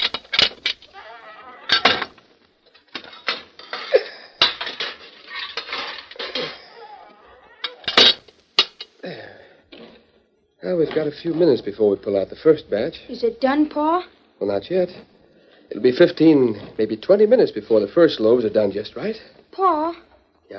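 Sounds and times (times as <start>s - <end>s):
metal bread pans clattering and scraping pushed into an oven: 0.0s - 0.9s, 1.7s - 6.7s, 7.5s - 9.0s
speech: 10.7s - 15.1s, 15.8s - 20.0s.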